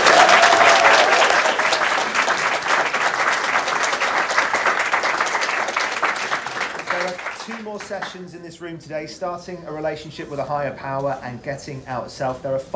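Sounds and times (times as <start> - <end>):
audience applause: 0.0 - 8.2
speech: 7.9 - 12.7.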